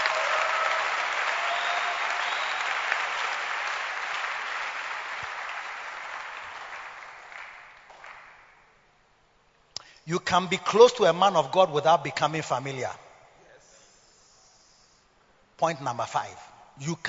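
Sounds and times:
audience clapping during a church sermon: 0.0s - 8.8s
speech: 10.1s - 13.0s, 15.6s - 17.0s.

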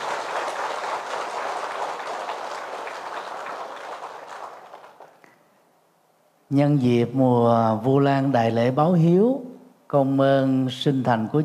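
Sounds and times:
crowd applause: 0.0s - 5.3s
speech: 6.5s - 11.4s.

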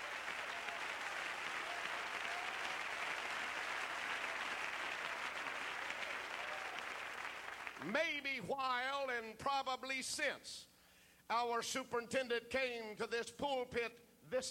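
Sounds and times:
audience clapping hands: 0.0s - 8.0s
speech: 7.8s - 10.7s, 11.3s - 14.5s.

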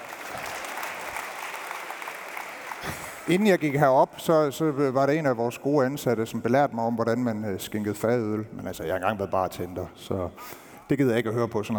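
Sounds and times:
crowd applause: 0.0s - 3.7s
speech: 2.8s - 11.7s.

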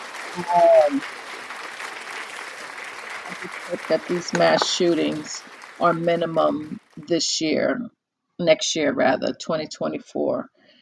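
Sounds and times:
audience applause: 0.0s - 7.0s
speech: 0.4s - 1.2s, 3.3s - 10.6s.

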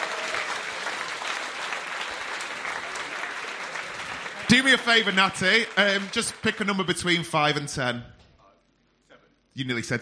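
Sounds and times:
audience applause: 0.0s - 7.4s
speech: 4.6s - 8.2s, 9.6s - 9.9s.

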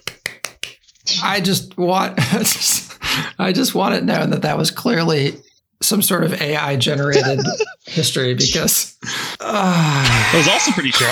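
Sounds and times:
soft golf clap: 0.0s - 0.8s
speech: 1.2s - 11.1s
laughter: 6.9s - 8.0s, 10.0s - 11.1s.

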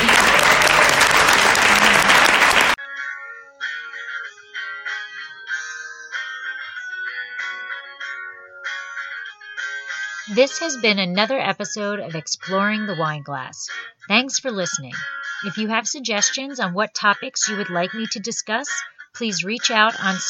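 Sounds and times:
audience applause: 0.0s - 2.8s
speech: 10.4s - 20.2s.

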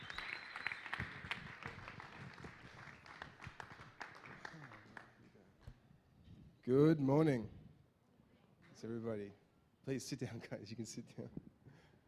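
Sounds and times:
audience applause: 0.0s - 5.1s
speech: 6.6s - 7.6s, 8.8s - 11.5s.

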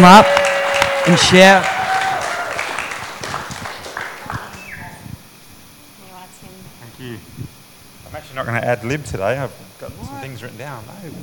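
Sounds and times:
speech: 0.0s - 1.8s, 8.4s - 11.2s
audience clapping at a church gathering: 0.0s - 5.0s.

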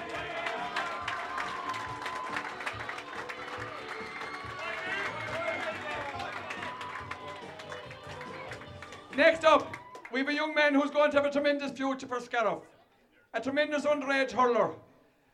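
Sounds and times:
audience applause: 0.0s - 10.2s
speech: 9.2s - 12.7s, 13.4s - 14.8s.

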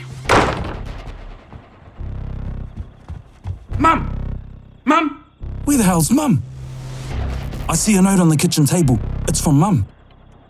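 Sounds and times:
front door slamming shut: 0.1s - 1.8s
speech: 3.8s - 4.1s, 5.7s - 6.5s, 7.7s - 10.0s.

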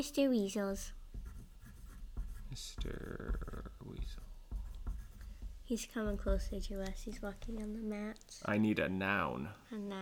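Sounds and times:
speech: 0.0s - 1.0s, 2.5s - 3.4s, 5.7s - 9.9s
pen writing on paper: 1.1s - 3.4s, 4.0s - 5.5s.

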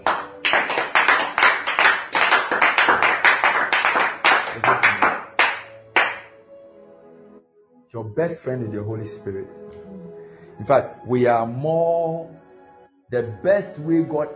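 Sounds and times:
audience clapping: 0.0s - 6.3s
speech: 7.9s - 9.6s, 10.6s - 12.4s, 13.1s - 14.3s.

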